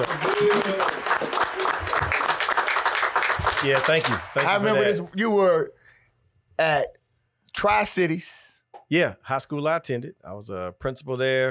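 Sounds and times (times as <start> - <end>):
audience applause: 0.0 - 5.0
speech: 3.6 - 5.8, 6.6 - 7.0, 7.6 - 11.5.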